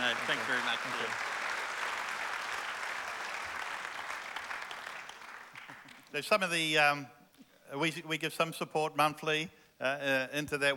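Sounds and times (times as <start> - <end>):
audience clapping: 0.0 - 6.2
speech: 0.2 - 1.4, 6.1 - 10.7.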